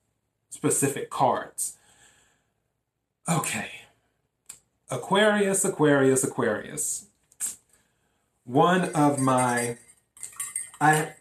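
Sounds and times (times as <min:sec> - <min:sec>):
speech: 0:00.6 - 0:01.8, 0:03.3 - 0:03.8, 0:04.9 - 0:07.6, 0:08.5 - 0:09.8, 0:10.8 - 0:11.1
spoon stirring ginger water in glass: 0:08.8 - 0:11.1.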